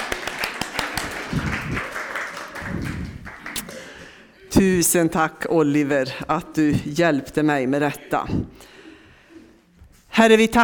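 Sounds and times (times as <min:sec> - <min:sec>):
applause: 0:00.0 - 0:03.8
speech: 0:04.6 - 0:08.8, 0:10.2 - 0:10.6.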